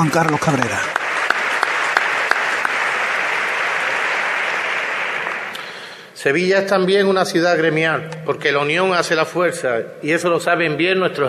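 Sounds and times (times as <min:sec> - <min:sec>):
speech: 0:00.0 - 0:01.0, 0:06.2 - 0:11.2
audience applause: 0:00.0 - 0:06.0.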